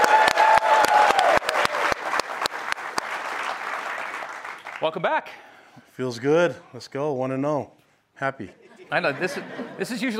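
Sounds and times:
audience clapping: 0.0 - 5.0
speech: 4.8 - 10.1
laughter: 8.4 - 10.1.

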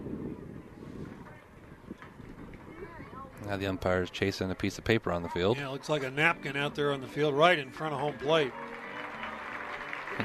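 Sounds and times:
speech: 3.5 - 8.8
stadium crowd applauding for the umpire: 8.3 - 10.2.

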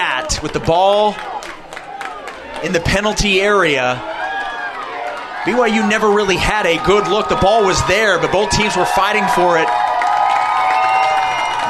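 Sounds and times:
large stadium crowd cheering: 0.0 - 11.6
speech: 0.3 - 1.3, 2.6 - 4.1, 5.4 - 9.8.

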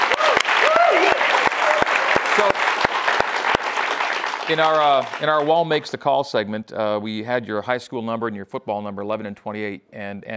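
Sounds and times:
sharp crisp claps: 0.0 - 5.9
audience applause after a question-and-answer segment: 0.0 - 6.0
speech: 2.4 - 2.7, 4.5 - 10.3.

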